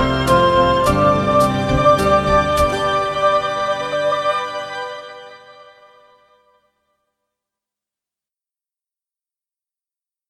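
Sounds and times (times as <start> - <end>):
band playing a melody: 0.0 - 4.4.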